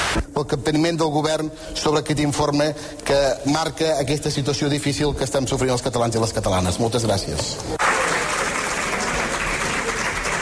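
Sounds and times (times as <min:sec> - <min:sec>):
speech: 0:00.4 - 0:07.8
parliamentary group applauding: 0:07.8 - 0:10.4.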